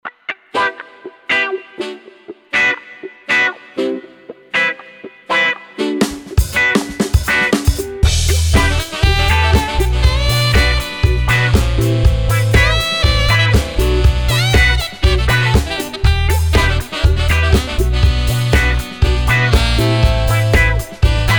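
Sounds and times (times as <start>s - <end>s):
funk soul ensemble playing: 0.4s - 21.3s.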